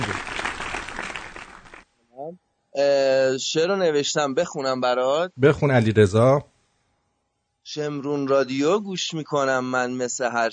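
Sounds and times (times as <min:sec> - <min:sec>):
hands clapping on a comedy radio show during a phone call: 0:00.0 - 0:01.8
speech: 0:02.3 - 0:06.5, 0:07.7 - 0:10.5.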